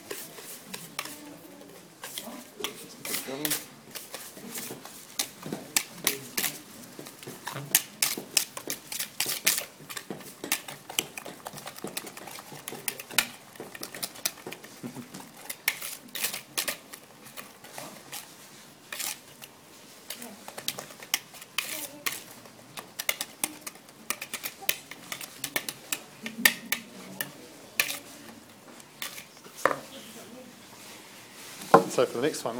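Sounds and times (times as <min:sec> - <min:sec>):
whisk beating a sugar and banana mixture in a bowl: 0:00.0 - 0:29.9
speech: 0:32.0 - 0:32.5.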